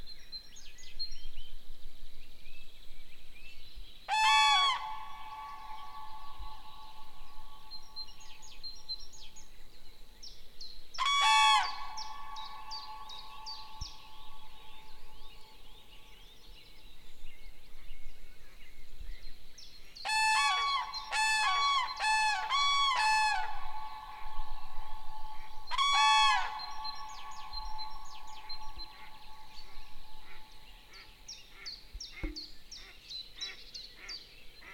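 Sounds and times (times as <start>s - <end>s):
Grus grus calling: 4.1s - 7.7s, 11.0s - 14.6s, 20.1s - 31.1s.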